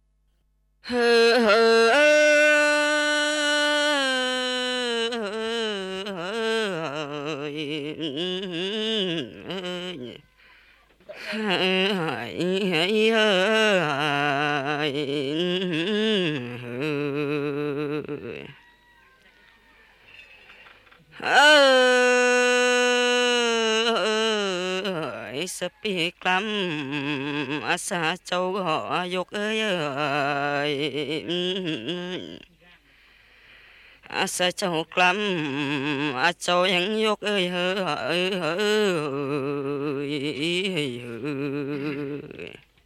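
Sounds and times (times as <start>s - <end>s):
Vietnamese courtly chant: 0.8s - 10.4s, 11.1s - 18.6s, 21.1s - 32.5s, 34.1s - 42.6s.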